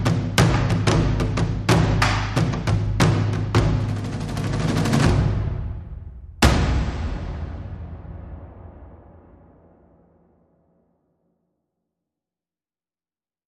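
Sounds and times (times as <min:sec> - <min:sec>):
light percussion: 0:00.0 - 0:09.8.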